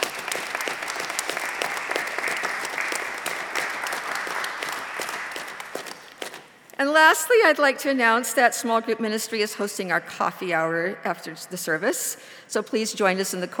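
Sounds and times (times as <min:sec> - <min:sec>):
audience applause: 0:00.0 - 0:06.4
speech: 0:06.8 - 0:13.5.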